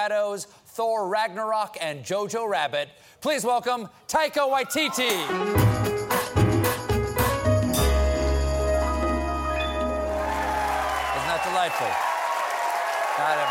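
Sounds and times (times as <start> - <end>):
speech: 0.0 - 6.2, 13.2 - 13.5
late-night talk show studio audience standing ovation: 4.7 - 6.3, 9.8 - 13.5
steady band music: 5.1 - 10.8.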